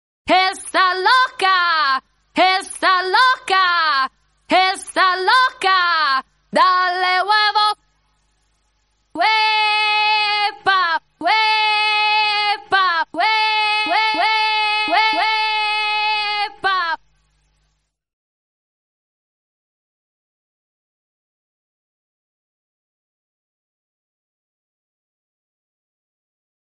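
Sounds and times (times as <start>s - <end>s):
person singing a cappella: 0.3s - 7.8s, 9.2s - 17.0s.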